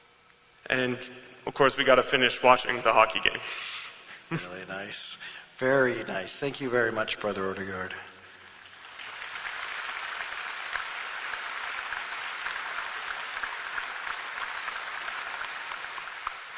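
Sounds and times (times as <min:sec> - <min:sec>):
speech: 0:00.7 - 0:08.1
audience clapping: 0:08.4 - 0:16.5.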